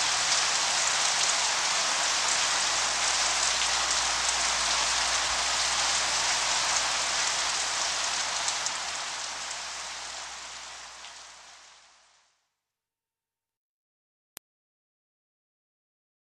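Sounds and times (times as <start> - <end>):
light rain: 0.0 - 12.4.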